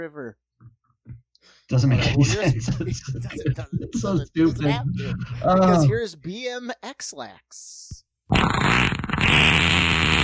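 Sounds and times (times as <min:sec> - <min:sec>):
speech: 0:00.0 - 0:00.5, 0:01.4 - 0:09.6
laughter: 0:01.7 - 0:06.0
long wet fart: 0:08.3 - 0:10.2.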